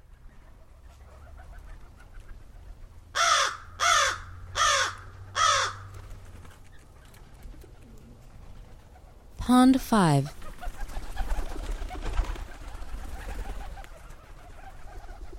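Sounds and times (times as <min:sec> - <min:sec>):
American crow cawing: 0:03.2 - 0:05.9
speech: 0:09.5 - 0:10.4.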